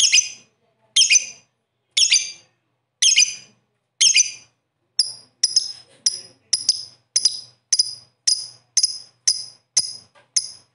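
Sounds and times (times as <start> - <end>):
bird song in short bright chirping bursts: 2.0 - 10.7.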